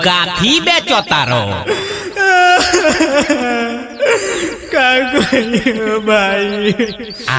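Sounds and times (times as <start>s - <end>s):
speech: 0.0s - 1.9s, 2.8s - 7.3s
laughter: 0.0s - 7.3s
person crying in distress: 1.5s - 7.3s.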